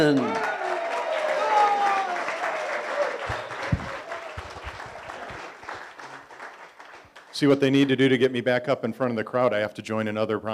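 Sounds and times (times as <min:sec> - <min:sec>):
speech: 0:00.0 - 0:00.5, 0:07.4 - 0:10.5
faint cheers: 0:00.0 - 0:05.5
audience applause welcoming a speaker: 0:00.0 - 0:07.8.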